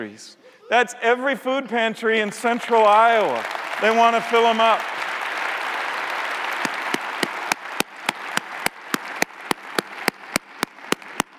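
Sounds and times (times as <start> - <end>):
speech: 0.0 - 5.1
audience clapping in unison: 2.2 - 11.3.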